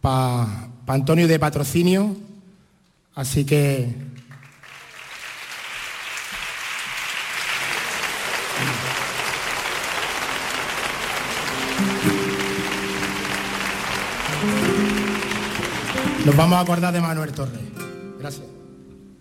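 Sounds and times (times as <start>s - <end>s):
speech: 0.0s - 2.3s, 3.2s - 4.1s, 16.2s - 18.6s
audience applause: 4.3s - 17.6s.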